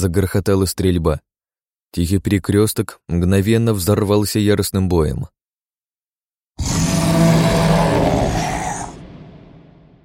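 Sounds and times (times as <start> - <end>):
speech: 0.0 - 1.3, 1.9 - 5.4
creature's roar of rage and pain: 6.6 - 10.0.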